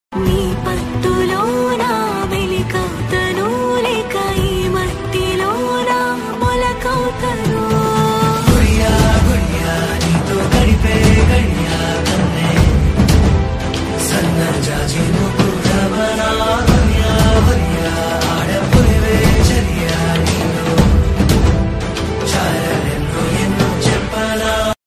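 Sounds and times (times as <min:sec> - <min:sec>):
background music ringtone: 0:00.1 - 0:24.8.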